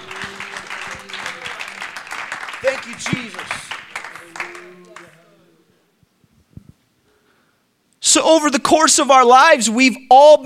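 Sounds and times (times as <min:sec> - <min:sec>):
audience clapping: 0:00.0 - 0:05.4
speech: 0:02.6 - 0:03.6, 0:08.1 - 0:10.4.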